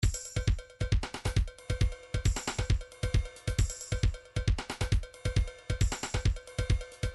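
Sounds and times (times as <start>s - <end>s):
trance MIDI loop beats: 0.0s - 7.1s.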